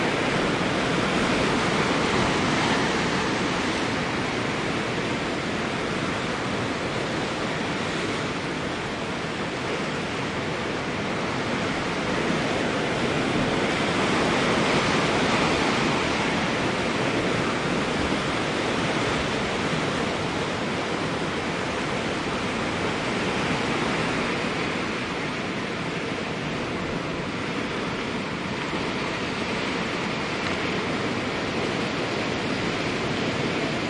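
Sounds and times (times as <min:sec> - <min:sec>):
distant sea waves on a seashore: 0:00.0 - 0:33.8.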